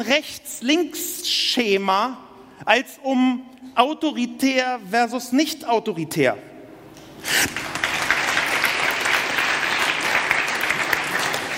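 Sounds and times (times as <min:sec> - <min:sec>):
speech: 0:00.0 - 0:06.5, 0:07.2 - 0:07.7
restrained applause: 0:07.5 - 0:11.5.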